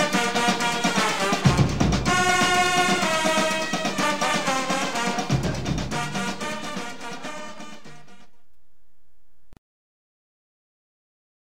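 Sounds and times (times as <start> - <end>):
calypso drumming: 0.0 - 8.3.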